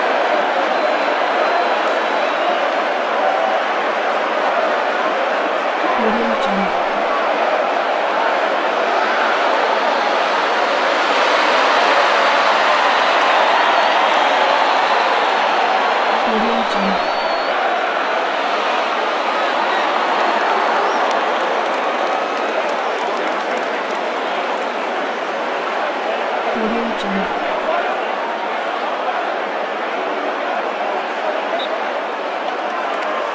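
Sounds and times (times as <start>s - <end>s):
football match ambience: 0.0s - 33.3s.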